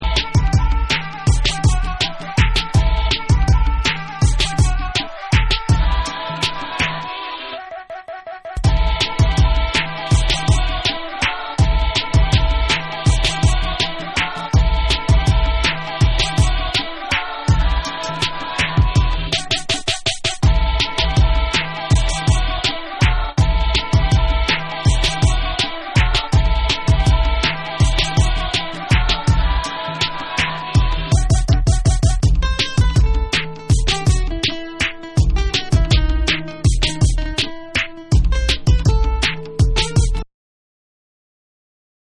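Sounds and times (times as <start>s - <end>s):
instrumental music: 0.0s - 40.2s.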